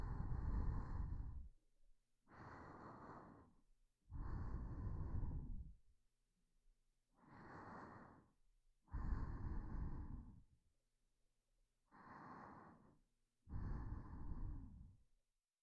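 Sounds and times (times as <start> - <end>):
person breathing in sleep: 0.0 - 1.6, 2.2 - 5.8, 7.1 - 10.5, 11.8 - 15.0.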